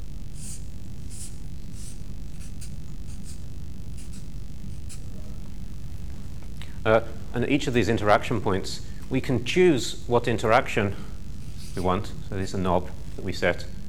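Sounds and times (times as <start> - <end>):
scratchy hand-drawn strokes sketching a box on a diagram: 0.3 - 5.1, 11.4 - 12.0
speech: 6.8 - 11.1, 11.8 - 13.8.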